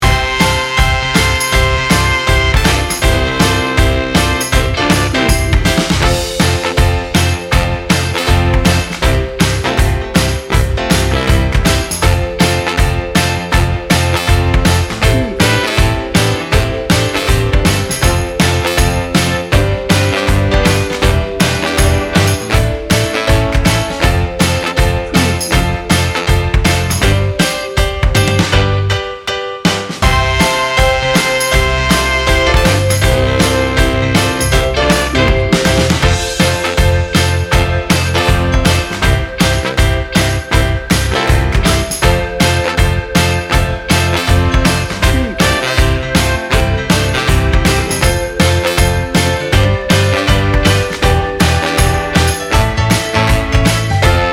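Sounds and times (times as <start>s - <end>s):
sunny Motown style music: 0.0s - 54.3s.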